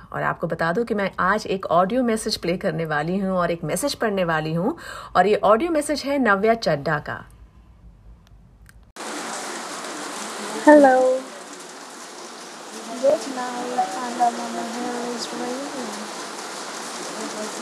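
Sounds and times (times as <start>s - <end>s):
speech: 0.1s - 7.3s, 10.6s - 11.3s, 13.0s - 16.2s, 17.2s - 17.5s
heavy rain in background of message: 9.0s - 17.5s.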